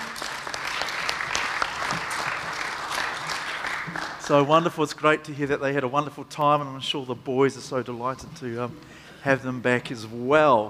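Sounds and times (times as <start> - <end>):
church audience applauding: 0.0 - 4.7
speech: 4.3 - 10.6.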